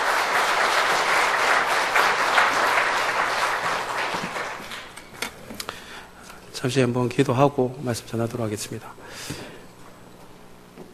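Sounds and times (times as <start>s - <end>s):
audience applauding in welcome: 0.0s - 5.0s
speech: 6.6s - 9.5s.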